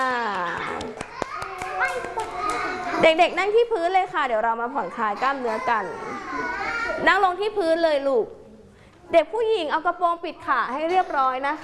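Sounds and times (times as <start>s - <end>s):
children clapping for themselves: 0.0s - 3.0s
speech: 3.0s - 8.4s, 9.1s - 11.6s.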